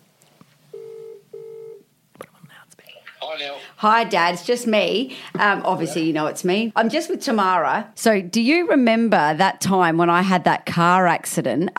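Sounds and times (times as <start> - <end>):
phone call ringing tones: 0.7 - 1.8
speech: 3.4 - 11.7.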